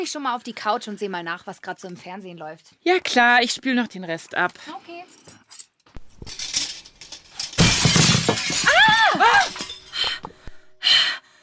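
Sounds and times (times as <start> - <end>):
speech: 0.0 - 5.6
glass shards tinkling and clattering down: 5.1 - 10.4
glass shattering from stone thrown through window: 6.0 - 10.4.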